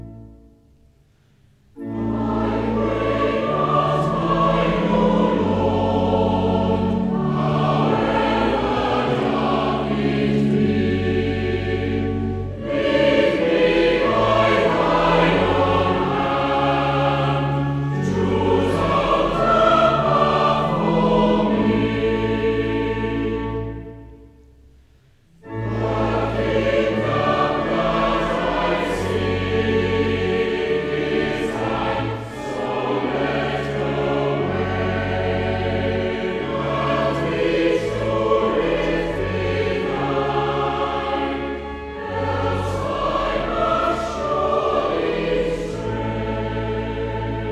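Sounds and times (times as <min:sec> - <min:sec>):
choir singing hymns: 0:01.8 - 0:24.3, 0:25.4 - 0:47.4.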